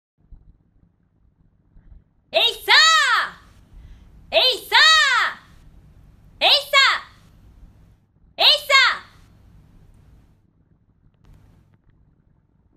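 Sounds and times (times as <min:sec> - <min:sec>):
voice: 0:02.4 - 0:03.5, 0:04.3 - 0:05.5, 0:06.4 - 0:07.2, 0:08.4 - 0:09.2.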